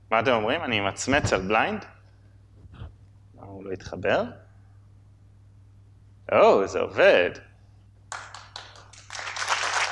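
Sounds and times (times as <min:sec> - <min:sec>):
faint low hum: 0:00.0 - 0:09.9
speech: 0:00.1 - 0:02.0, 0:03.5 - 0:04.4, 0:06.3 - 0:07.5
audience clapping after a live software demo at a talk: 0:08.1 - 0:09.9.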